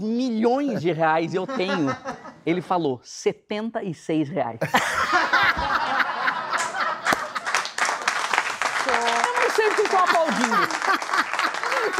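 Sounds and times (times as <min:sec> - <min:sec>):
speech: 0:00.0 - 0:05.3
laughter: 0:00.6 - 0:02.4, 0:04.6 - 0:07.8, 0:08.9 - 0:11.9
applause sound effect: 0:06.6 - 0:11.9.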